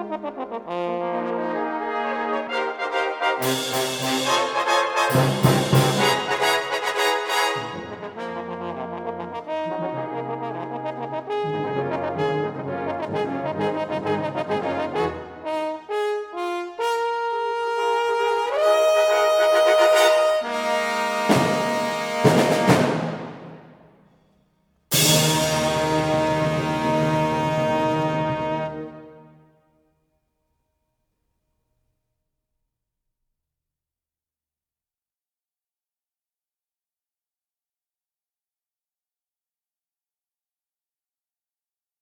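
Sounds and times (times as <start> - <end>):
French horn concerto with brass band, allegro movement: 0.0 - 23.8, 24.9 - 29.6.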